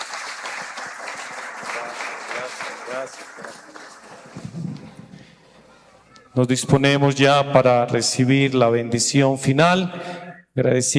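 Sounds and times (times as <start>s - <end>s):
audience applause: 0.0s - 5.0s
speech: 2.4s - 4.3s, 6.4s - 10.9s.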